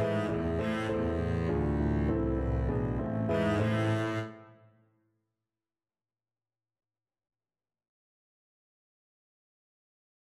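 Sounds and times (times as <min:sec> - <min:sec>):
double bass playing: 0:00.0 - 0:04.3.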